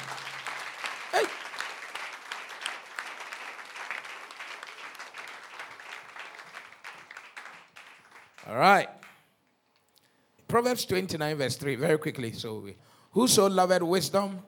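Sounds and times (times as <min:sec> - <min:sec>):
audience clapping hands: 0:00.0 - 0:09.6
speech: 0:01.2 - 0:01.4, 0:08.5 - 0:08.9, 0:10.6 - 0:14.4.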